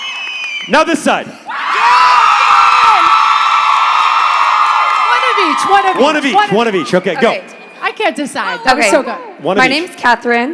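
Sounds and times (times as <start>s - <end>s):
audience cheering and whooping: 0.0s - 0.7s, 1.5s - 7.9s
speech: 0.7s - 1.5s, 5.4s - 10.5s
audience applause: 1.7s - 7.1s.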